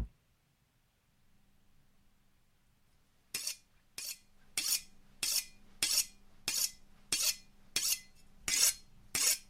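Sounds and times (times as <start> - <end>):
knife being sharpened: 3.4 - 9.4.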